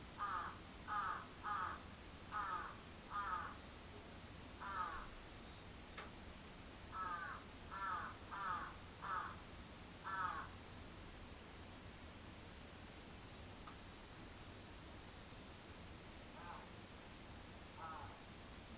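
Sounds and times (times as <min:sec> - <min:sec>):
crow cawing: 0:00.2 - 0:03.6, 0:04.6 - 0:05.1, 0:06.9 - 0:09.4, 0:10.0 - 0:10.6, 0:16.4 - 0:16.7, 0:17.8 - 0:18.2.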